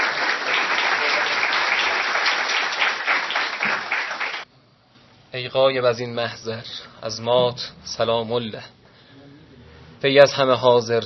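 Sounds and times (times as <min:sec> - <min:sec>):
audience applause: 0:00.0 - 0:04.4
speech: 0:05.4 - 0:08.8, 0:10.0 - 0:11.0.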